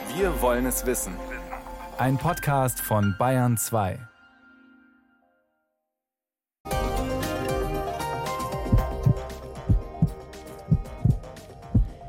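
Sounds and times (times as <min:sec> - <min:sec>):
music: 0:00.0 - 0:05.8, 0:06.6 - 0:12.0
speech: 0:00.2 - 0:01.4, 0:02.0 - 0:04.1
heartbeat: 0:08.6 - 0:12.0.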